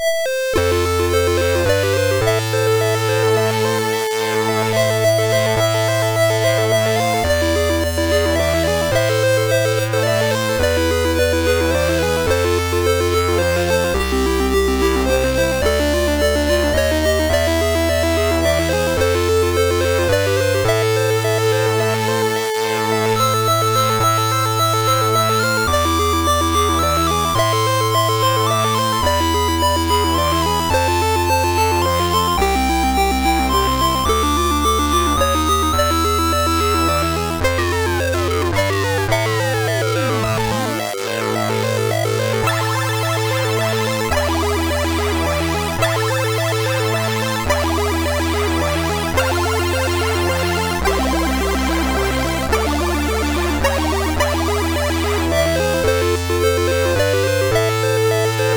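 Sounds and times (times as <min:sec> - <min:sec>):
slow sad chiptune intro on MOS 6581R3 SID chip: 0:00.0 - 0:58.5.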